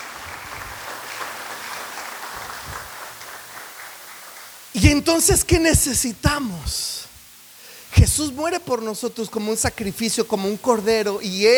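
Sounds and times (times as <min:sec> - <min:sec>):
audience applauding: 0:00.0 - 0:05.7
speech: 0:04.8 - 0:07.0, 0:08.0 - 0:11.5.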